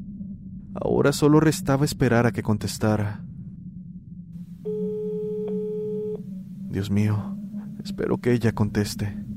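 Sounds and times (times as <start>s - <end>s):
low hum: 0.0s - 9.3s
speech: 0.8s - 3.3s, 6.8s - 9.2s
telephone line tone after dialing: 4.6s - 6.3s.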